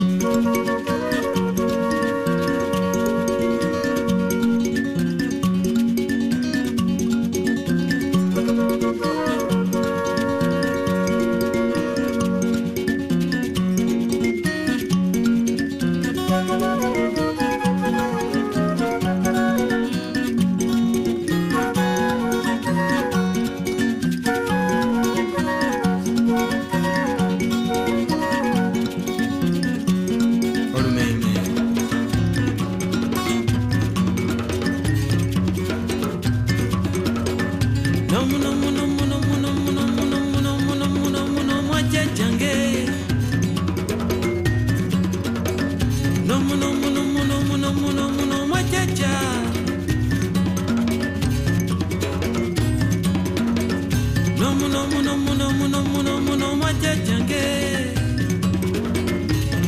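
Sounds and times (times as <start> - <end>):
traditional Luganda music: 0.0 - 59.6.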